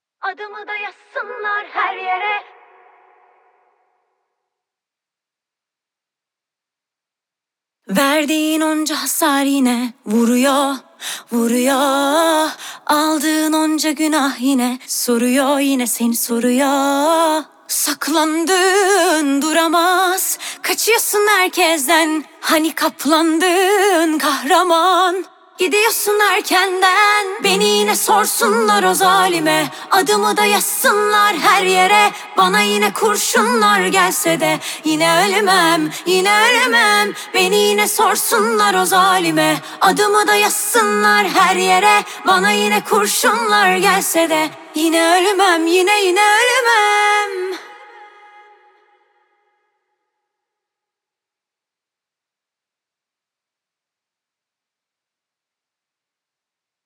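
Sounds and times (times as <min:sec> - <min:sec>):
a cappella singing: 0:00.2 - 0:03.6, 0:07.9 - 0:49.1.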